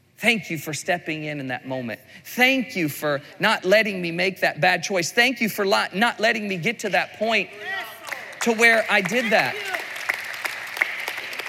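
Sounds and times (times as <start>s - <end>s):
speech: 0.2s - 7.8s, 8.4s - 9.8s
audience clapping: 7.8s - 11.4s.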